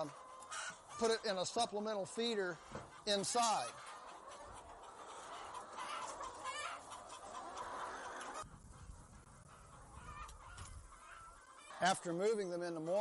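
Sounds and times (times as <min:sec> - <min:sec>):
speech: 0:00.0 - 0:03.8, 0:11.8 - 0:12.9
chickens clucking: 0:00.0 - 0:12.9.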